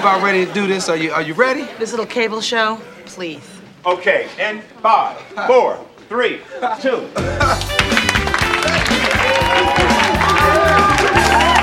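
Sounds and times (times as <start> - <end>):
speech: 0.0 - 7.8
studio audience clapping and cheering on a cable talk show: 7.2 - 11.6.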